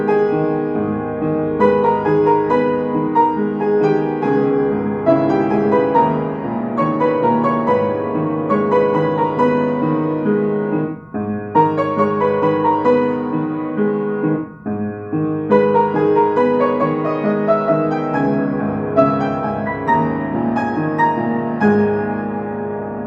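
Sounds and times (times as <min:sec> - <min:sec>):
piano instrumental: 0:00.0 - 0:23.0.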